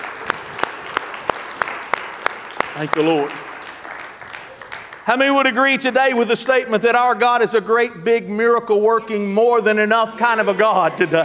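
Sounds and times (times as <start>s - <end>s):
audience clapping in unison in praise: 0.0s - 5.6s
speech: 2.8s - 3.4s, 5.1s - 11.2s.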